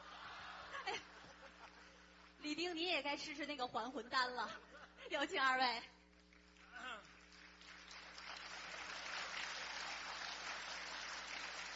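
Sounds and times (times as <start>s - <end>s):
speech: 0.9s - 1.2s, 2.4s - 6.0s
audience applause: 6.3s - 11.7s.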